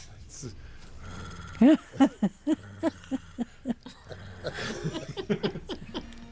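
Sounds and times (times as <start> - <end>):
voice imitating a cat purring: 1.0 - 4.7
laughter: 1.6 - 6.3.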